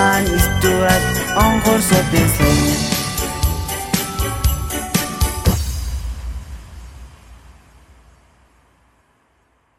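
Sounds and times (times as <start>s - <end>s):
Christmas song: 0.0s - 5.9s.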